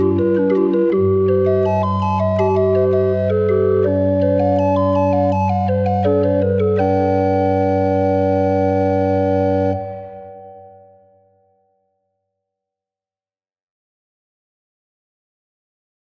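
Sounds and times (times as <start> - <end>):
36er barrel organ playing: 0.0 - 10.8.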